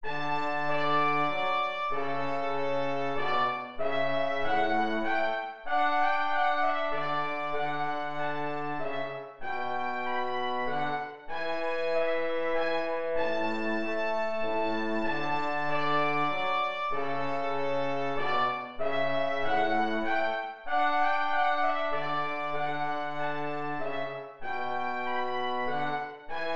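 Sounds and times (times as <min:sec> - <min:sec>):
minuet in a major key: 0:00.0 - 0:26.5.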